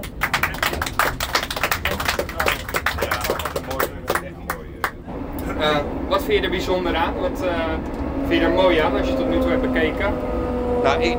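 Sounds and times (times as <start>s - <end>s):
crowd applause: 0.0s - 5.0s
speech: 5.6s - 11.1s.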